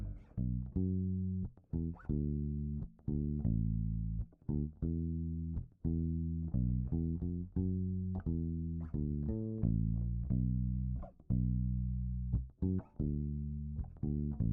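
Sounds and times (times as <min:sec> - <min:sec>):
bass effect: 0:00.0 - 0:14.5.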